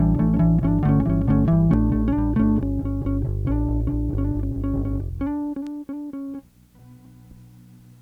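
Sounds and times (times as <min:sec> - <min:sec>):
bass line: 0:00.0 - 0:05.6.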